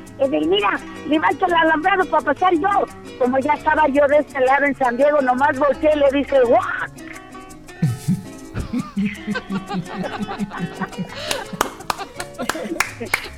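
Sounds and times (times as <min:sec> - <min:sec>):
speech: 0:00.2 - 0:07.0, 0:09.0 - 0:11.6, 0:12.6 - 0:13.3
laughter: 0:07.8 - 0:13.3
audience applause: 0:11.1 - 0:13.3.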